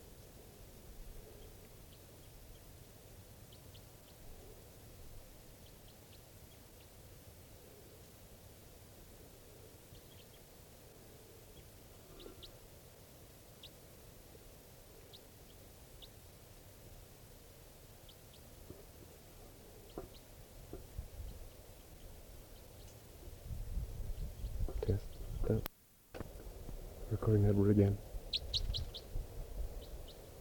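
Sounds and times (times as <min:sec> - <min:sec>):
bird chirping in a flock: 0:01.0 - 0:02.8, 0:03.4 - 0:07.0, 0:09.1 - 0:16.4, 0:17.6 - 0:30.4
steady wind-like hiss: 0:20.6 - 0:30.4
speech: 0:27.3 - 0:28.1.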